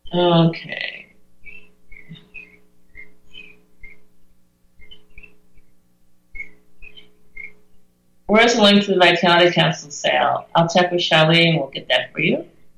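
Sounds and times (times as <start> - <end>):
speech: 0.1 - 0.9, 8.3 - 12.5
birds in the jungle: 1.4 - 4.2, 4.8 - 7.9.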